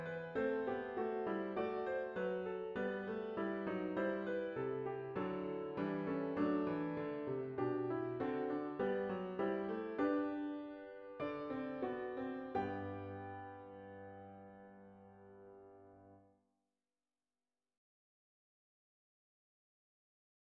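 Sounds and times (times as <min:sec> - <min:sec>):
piano repetitions: 0:00.0 - 0:15.7.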